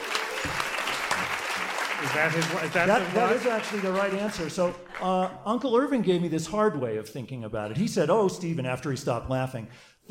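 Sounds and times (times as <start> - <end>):
audience applause: 0.0 - 5.3
speech: 0.4 - 0.7, 2.0 - 10.0.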